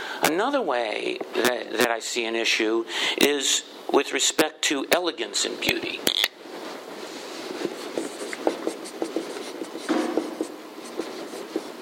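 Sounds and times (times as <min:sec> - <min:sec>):
speech: 0:00.3 - 0:06.4
pen writing on paper: 0:07.6 - 0:11.8.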